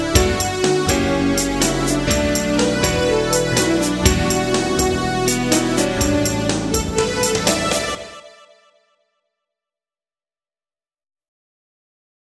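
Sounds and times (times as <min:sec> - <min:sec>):
dance music: 0:00.0 - 0:08.6.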